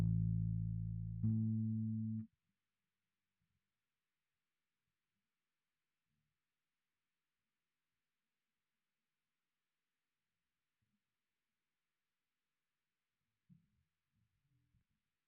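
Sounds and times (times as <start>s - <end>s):
bass guitar through SansAmp: 0.0s - 2.2s.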